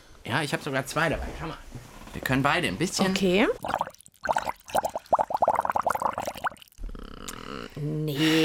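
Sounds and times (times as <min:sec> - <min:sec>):
speech: 0:00.3 - 0:03.9
air blown through a straw into a bowl of water: 0:03.6 - 0:06.8.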